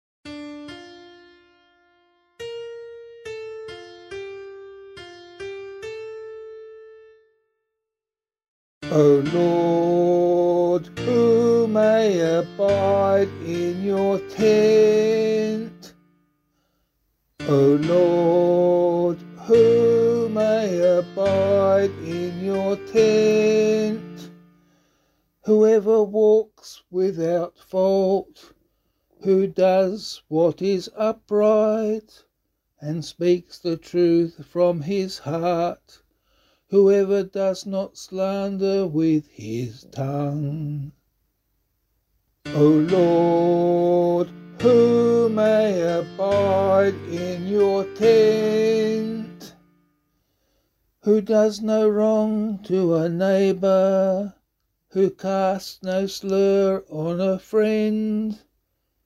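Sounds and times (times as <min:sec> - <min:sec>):
psalm in C sung by voice: 0:08.8 - 0:16.0, 0:17.4 - 0:24.5, 0:25.4 - 0:28.6, 0:29.2 - 0:32.2, 0:32.8 - 0:36.0, 0:36.7 - 0:41.0, 0:42.4 - 0:49.7, 0:51.0 - 0:58.5.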